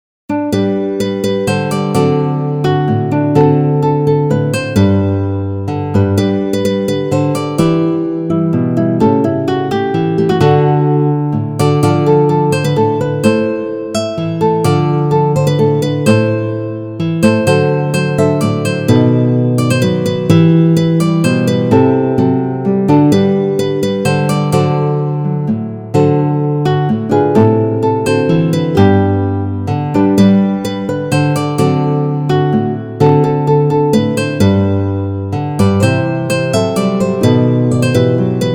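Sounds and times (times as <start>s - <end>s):
guitar piece: 0.3s - 38.5s.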